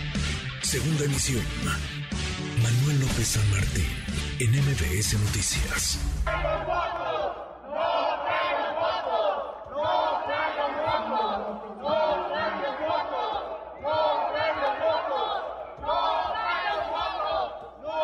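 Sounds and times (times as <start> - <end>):
speech: 0.2 - 2.0, 2.6 - 7.0
opposition senators shouting in chamber: 6.2 - 18.0.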